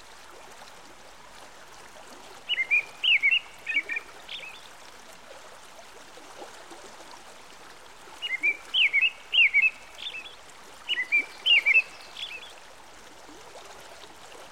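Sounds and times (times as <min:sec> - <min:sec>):
American robin song by a stream: 0:02.5 - 0:04.6, 0:08.2 - 0:12.5.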